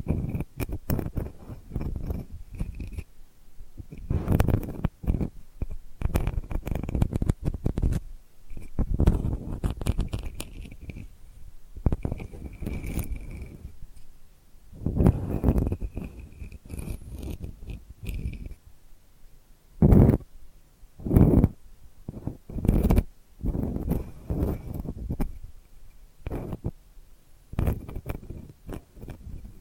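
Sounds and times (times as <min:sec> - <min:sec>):
delicate soft dry scratching: 0:00.0 - 0:03.2, 0:03.8 - 0:18.7, 0:19.8 - 0:20.3, 0:21.0 - 0:26.8, 0:27.5 - 0:29.5.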